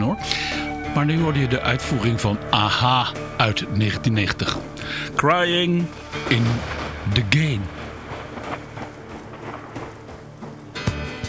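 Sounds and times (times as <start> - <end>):
rolling thunder from approaching thunderstorms: 0.0 - 10.0
steady dense rain: 0.0 - 11.2
speech: 1.0 - 7.8.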